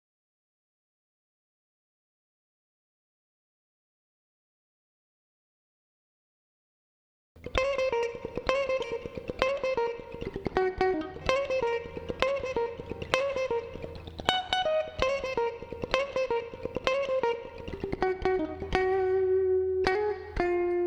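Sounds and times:
funk music: 7.4 - 20.8.

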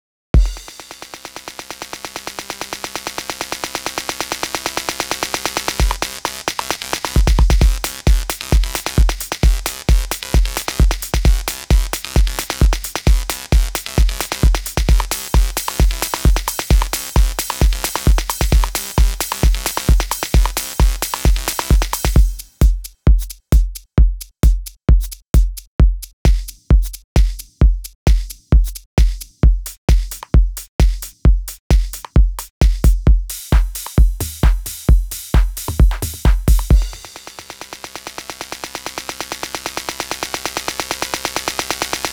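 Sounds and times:
techno drum kit at 132 bpm: 0.4 - 42.1.

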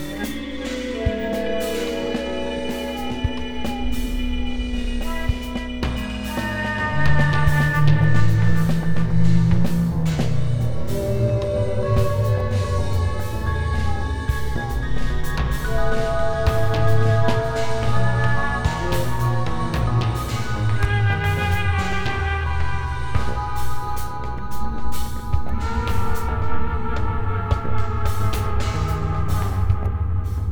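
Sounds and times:
slow free atonal music: 0.0 - 30.5.

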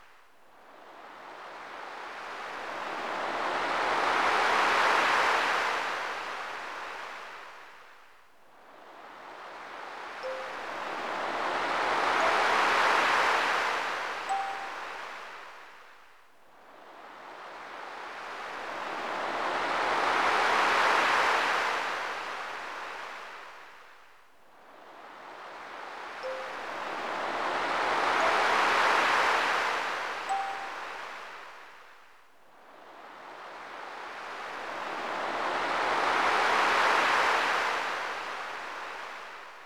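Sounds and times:
waves on a seashore: 0.7 - 7.9, 8.6 - 15.9, 16.7 - 24.0, 24.6 - 31.9, 32.7 - 39.6.

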